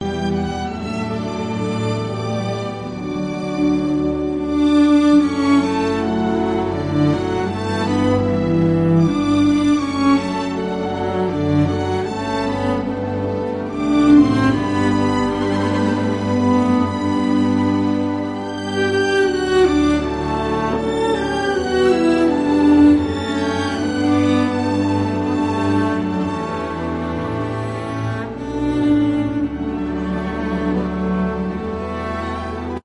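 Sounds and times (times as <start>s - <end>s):
classical serenade: 0.0s - 32.8s.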